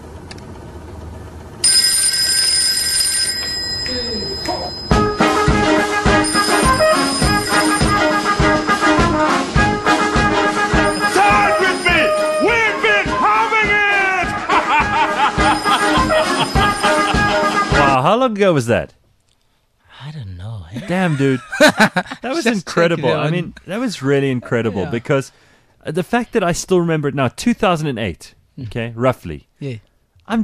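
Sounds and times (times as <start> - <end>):
mobile phone ringtone: 1.6 - 9.3, 10.3 - 13.2, 15.2 - 18.0
laughter: 13.6 - 18.0, 20.8 - 25.2
speech: 18.3 - 19.0, 20.7 - 30.4.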